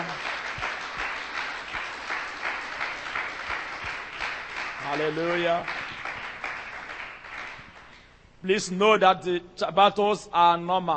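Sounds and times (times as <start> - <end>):
audience clapping hands: 0.0 - 8.1
speech: 4.9 - 5.8, 8.4 - 10.9.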